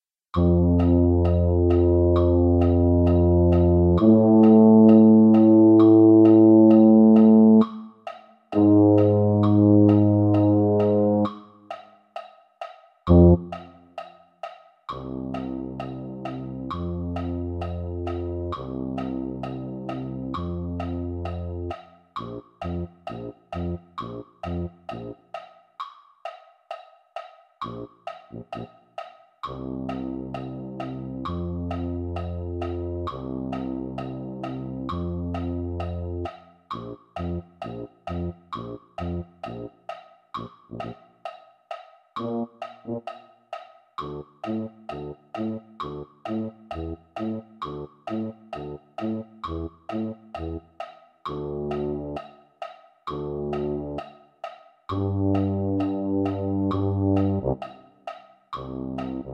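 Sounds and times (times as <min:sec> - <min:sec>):
tuba: 0:00.4 - 0:07.9, 0:08.6 - 0:11.5, 0:13.1 - 0:13.6, 0:14.9 - 0:25.2, 0:29.5 - 0:39.7, 0:42.2 - 0:43.3, 0:44.0 - 0:50.6, 0:51.3 - 0:52.3, 0:53.1 - 0:54.1, 0:54.9 - 0:57.9, 0:58.6 - 0:59.3.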